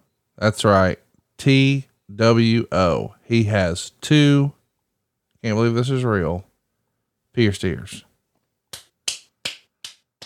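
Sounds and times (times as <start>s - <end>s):
speech: 0.4s - 4.6s, 5.4s - 6.5s, 7.4s - 8.1s
hand clapping: 8.7s - 10.2s.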